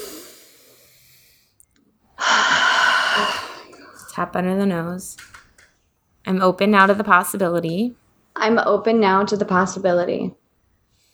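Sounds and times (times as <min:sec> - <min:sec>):
deep breath during a guided tapping exercise: 0:00.0 - 0:01.6, 0:02.2 - 0:05.2
speech: 0:04.2 - 0:05.3, 0:06.2 - 0:10.4.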